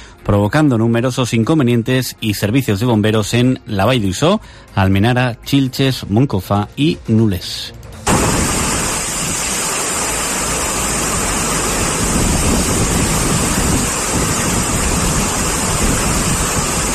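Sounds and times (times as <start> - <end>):
speech: 0.2 - 7.8
rainstorm: 8.1 - 16.9
strong wind gusts: 8.1 - 16.9.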